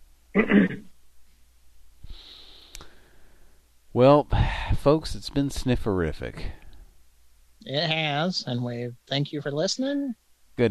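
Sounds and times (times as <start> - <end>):
speech: 0.4 - 0.8, 4.0 - 6.6, 7.6 - 10.6
person clearing throat: 0.4 - 0.9.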